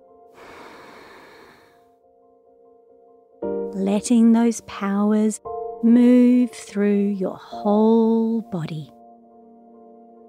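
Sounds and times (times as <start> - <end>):
long exhale during a guided breathing exercise: 0.4 - 1.8
speech: 3.8 - 8.9.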